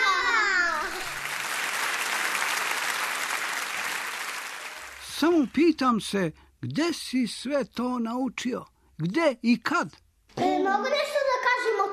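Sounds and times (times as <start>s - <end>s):
children's applause: 0.7s - 5.3s
speech: 5.2s - 10.0s, 10.7s - 11.9s.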